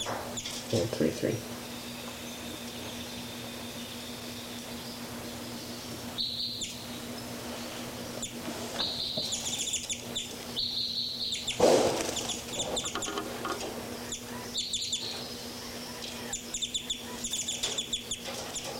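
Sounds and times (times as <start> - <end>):
birds calling while flying around: 0.0 - 18.7
speech: 0.7 - 1.6.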